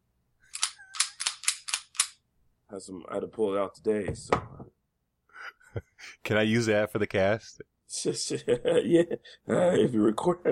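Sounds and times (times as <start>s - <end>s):
handgun being cleared, chambered round removed: 0.6s - 2.2s
speech: 2.7s - 4.8s, 5.8s - 10.5s.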